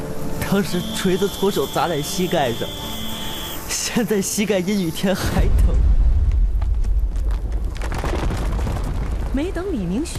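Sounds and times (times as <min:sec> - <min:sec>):
speech: 0:00.5 - 0:03.0, 0:03.9 - 0:05.9, 0:09.4 - 0:10.1
loud explosion blast: 0:05.3 - 0:09.9.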